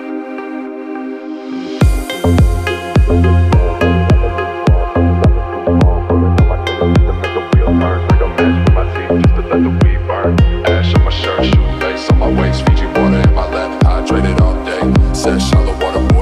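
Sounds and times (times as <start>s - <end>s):
deep house remix: 1.4s - 16.1s.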